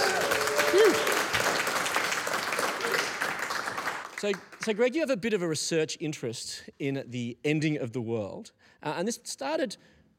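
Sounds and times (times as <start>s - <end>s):
audience round of applause: 0.0s - 4.8s
speech: 4.2s - 10.0s.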